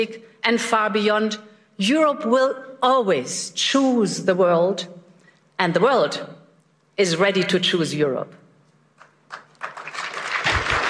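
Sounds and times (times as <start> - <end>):
speech: 0.0 - 5.0, 5.6 - 6.4, 7.0 - 8.4
smattering of applause after a speech about Europe: 9.0 - 10.8.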